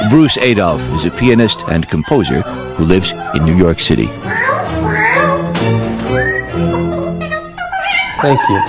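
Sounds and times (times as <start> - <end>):
speech: 0.1 - 4.4, 8.2 - 8.6
parrot vocalizing: 2.2 - 8.6.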